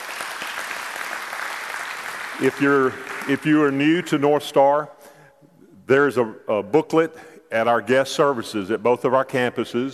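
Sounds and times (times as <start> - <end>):
audience praise clapping: 0.0 - 3.9
speech: 2.4 - 5.0, 5.9 - 9.9.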